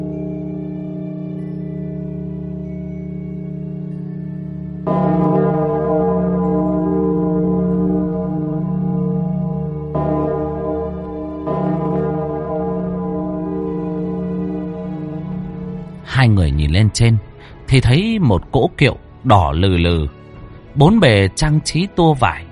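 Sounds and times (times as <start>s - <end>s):
deep bell tolling: 0.0s - 17.0s
speech: 16.4s - 20.2s, 20.8s - 22.4s.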